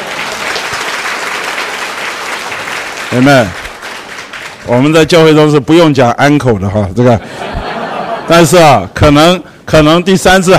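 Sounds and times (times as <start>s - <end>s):
audience applause: 0.0s - 4.9s
speech: 3.1s - 3.6s, 4.7s - 7.6s, 8.3s - 10.5s
laughter: 7.2s - 9.0s.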